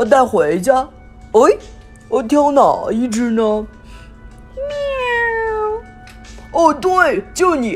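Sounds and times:
speech: 0:00.0 - 0:03.8, 0:06.5 - 0:07.7
kitten meowing: 0:04.6 - 0:05.9.

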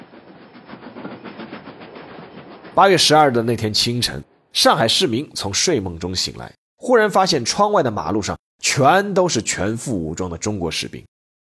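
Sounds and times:
train running on rails: 0:00.0 - 0:06.3
speech: 0:02.8 - 0:11.1.

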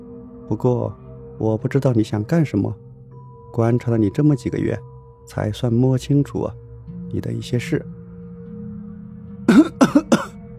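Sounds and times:
speech: 0:00.5 - 0:02.8, 0:03.5 - 0:08.0
old man coughing: 0:09.5 - 0:10.4.

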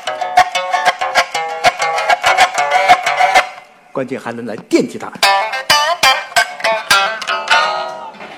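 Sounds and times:
pipa strummed in folk-guitar manner: 0:00.0 - 0:03.8, 0:05.0 - 0:08.2
speech: 0:04.0 - 0:05.4.

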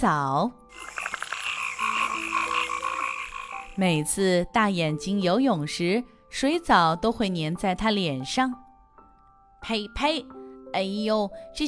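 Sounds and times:
speech: 0:00.0 - 0:01.0, 0:03.8 - 0:08.6, 0:09.6 - 0:11.6
frogs croaking in a chorus: 0:00.7 - 0:04.1.

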